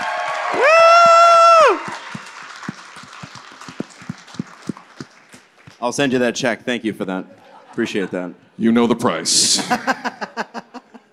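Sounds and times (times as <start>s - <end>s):
audience applause and cheering: 0.0s - 6.0s
speech: 5.8s - 10.2s
laughter: 7.2s - 8.5s, 9.4s - 11.1s.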